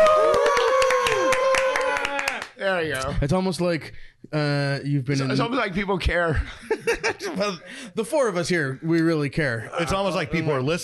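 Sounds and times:
canned applause track: 0.0 - 2.6
speech: 2.6 - 10.8
laughter: 5.2 - 7.9.

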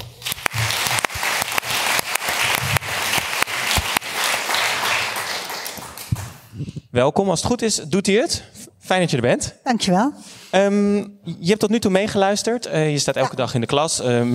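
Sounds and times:
warm audience applause: 0.0 - 6.5
speech: 7.0 - 14.3.

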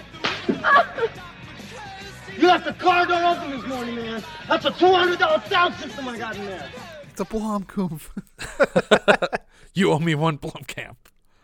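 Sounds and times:
laughter: 0.0 - 9.6
hard slap across the face: 0.1 - 0.9
speech: 0.8 - 1.4, 2.4 - 11.0.

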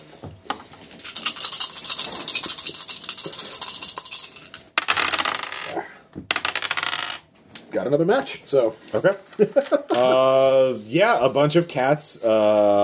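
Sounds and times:
dice rattling on hard surface: 1.0 - 5.7, 6.3 - 7.3
speech: 7.8 - 12.8.

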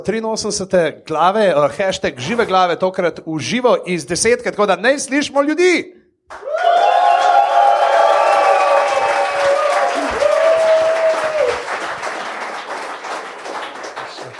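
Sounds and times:
speech: 0.0 - 6.8
soundboard crowd applause and cheering effect: 6.3 - 14.3.

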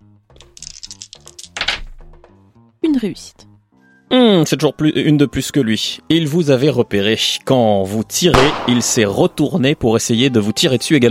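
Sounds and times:
dice rattling in a tabletop role-playing game: 0.4 - 1.9
speech: 2.9 - 3.5, 4.1 - 11.0.

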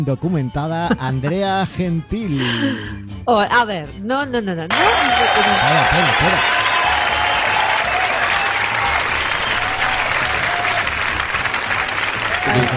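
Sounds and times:
speech: 0.0 - 6.6
laughter: 0.8 - 1.2, 2.3 - 3.1, 4.7 - 6.8
applause: 4.7 - 12.7.

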